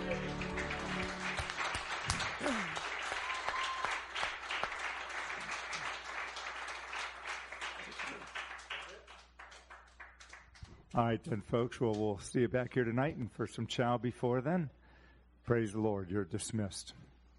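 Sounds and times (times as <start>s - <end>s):
crowd clapping: 0.0s - 12.2s
whoops and shouts: 2.4s - 4.0s
speech: 11.0s - 14.8s, 15.5s - 17.0s.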